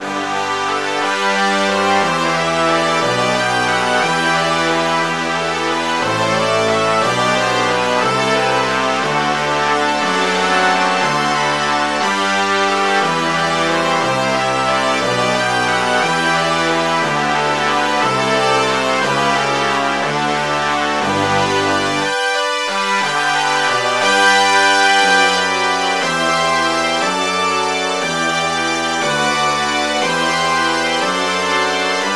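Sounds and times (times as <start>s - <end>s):
brass section playing: 0.0s - 32.1s.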